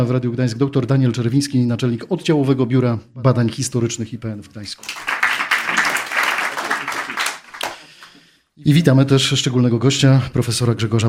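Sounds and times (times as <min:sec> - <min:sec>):
speech: 0:00.0 - 0:05.1, 0:08.6 - 0:11.0
audience applause: 0:04.8 - 0:08.2.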